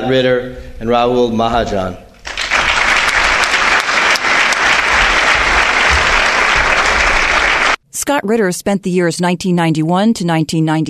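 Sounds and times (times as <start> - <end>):
speech: 0.0 - 2.0, 8.0 - 10.8
audience applause at a lecture in West Hartford: 2.2 - 7.8.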